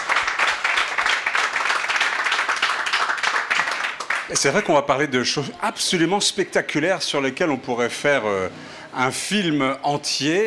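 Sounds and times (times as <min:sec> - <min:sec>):
audience applause: 0:00.0 - 0:04.8
speech: 0:04.3 - 0:10.4.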